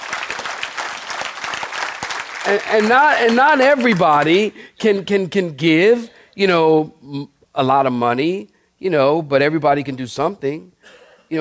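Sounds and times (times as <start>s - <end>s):
audience clapping hands: 0.0s - 4.5s
speech: 2.5s - 11.4s.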